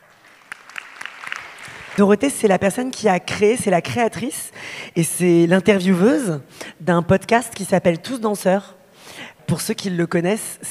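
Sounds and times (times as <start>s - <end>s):
audience applause: 0.0s - 2.0s
speech: 2.0s - 10.6s.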